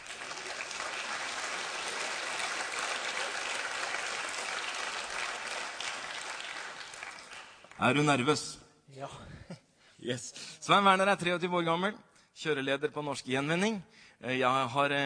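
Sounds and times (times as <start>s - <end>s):
audience applause: 0.0s - 8.1s
speech: 7.8s - 15.0s.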